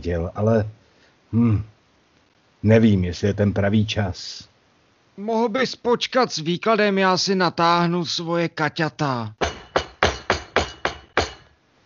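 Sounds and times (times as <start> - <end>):
speech: 0.0 - 1.7, 2.6 - 4.5, 5.2 - 9.4
firm knocking on a door: 9.4 - 11.4.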